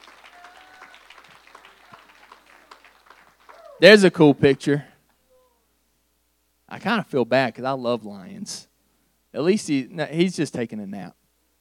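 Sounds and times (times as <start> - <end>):
crowd clapping hands: 0.0 - 3.9
speech: 3.8 - 4.9, 6.8 - 8.7, 9.3 - 11.2.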